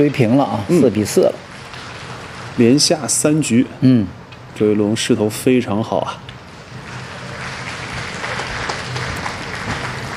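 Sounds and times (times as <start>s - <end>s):
speech: 0.0s - 1.5s, 2.6s - 6.3s
applause from a neighbouring snooker table: 0.8s - 2.6s, 6.6s - 10.1s.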